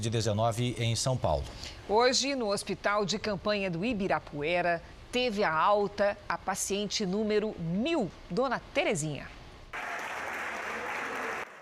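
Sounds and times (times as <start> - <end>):
speech: 0.0 - 9.4
applause for discharged patient: 9.7 - 11.6.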